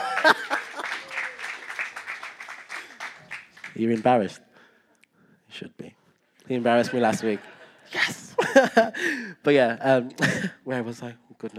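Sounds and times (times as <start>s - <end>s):
laughter: 0.0s - 1.6s, 6.5s - 9.2s
round of applause: 0.0s - 4.3s
speech: 0.2s - 0.6s, 3.8s - 4.5s, 5.6s - 11.5s.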